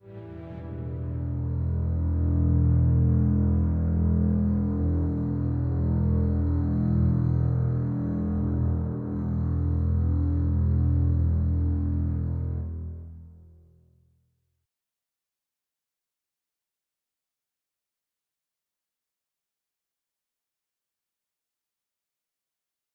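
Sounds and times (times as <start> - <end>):
strings: 0.0 - 13.2.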